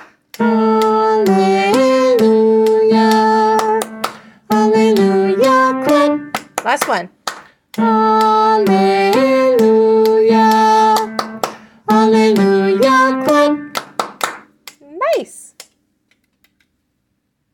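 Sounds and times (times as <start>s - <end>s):
chamber choir tenors singing: 0.4s - 6.2s, 7.8s - 13.6s.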